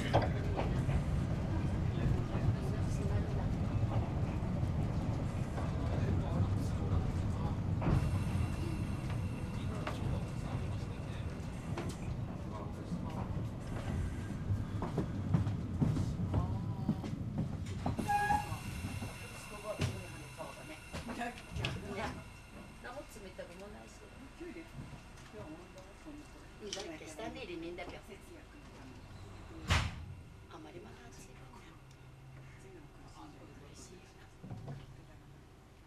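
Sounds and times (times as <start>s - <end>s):
Tsugaru stove train: 0.0s - 35.8s.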